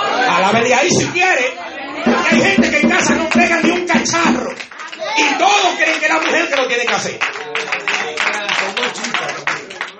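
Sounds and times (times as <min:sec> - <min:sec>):
speech: 0:00.5 - 0:07.8
church congregation applauding a preacher: 0:02.2 - 0:09.9.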